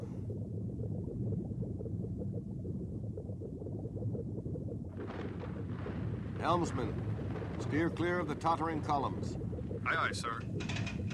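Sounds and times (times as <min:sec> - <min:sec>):
underwater volcano rumbling: 0:00.0 - 0:11.1
speech: 0:06.4 - 0:10.8.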